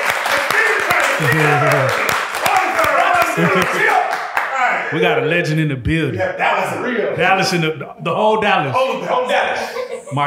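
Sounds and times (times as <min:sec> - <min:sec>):
audience clapping: 0:00.0 - 0:04.8
laughter: 0:01.0 - 0:02.1, 0:03.0 - 0:04.1, 0:08.8 - 0:10.2
speech: 0:01.2 - 0:02.0, 0:03.4 - 0:04.2, 0:04.8 - 0:10.2.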